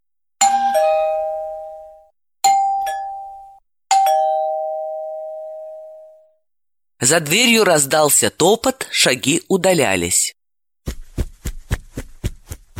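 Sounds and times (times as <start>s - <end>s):
doorbell ding-dong chime: 0.4s - 6.4s
speech: 7.0s - 10.4s.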